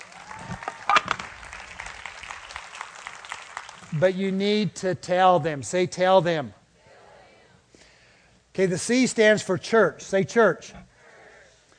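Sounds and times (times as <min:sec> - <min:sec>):
audience applause: 0:00.0 - 0:04.2
speech: 0:03.9 - 0:06.6, 0:08.6 - 0:10.9.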